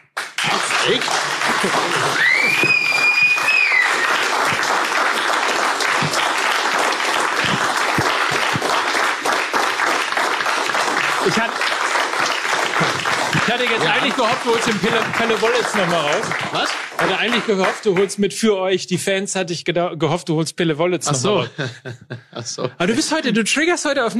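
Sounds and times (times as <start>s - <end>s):
applause: 0.0s - 18.2s
laughter: 0.5s - 2.8s, 7.3s - 8.9s, 12.6s - 17.5s, 21.1s - 23.4s
speech: 0.8s - 3.4s, 11.3s - 11.8s, 13.5s - 24.1s.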